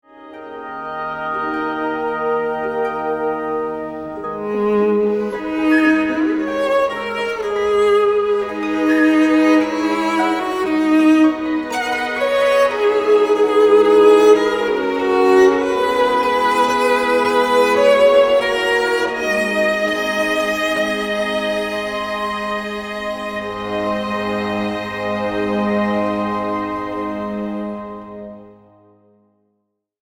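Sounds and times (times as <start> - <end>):
first movement of an instrumental piece: 0.0 - 29.2.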